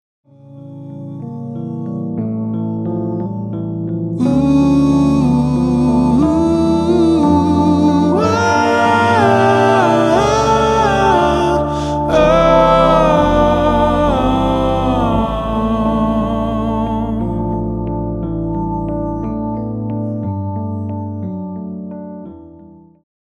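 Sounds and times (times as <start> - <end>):
Rhodes electric piano: 0.3 - 23.0
vocals: 4.1 - 18.5.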